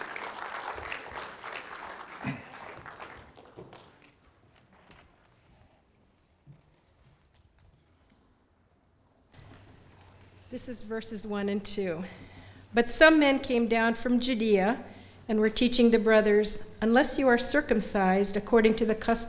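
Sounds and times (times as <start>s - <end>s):
audience applause welcoming a reader: 0.0s - 4.5s
speech: 10.6s - 19.2s.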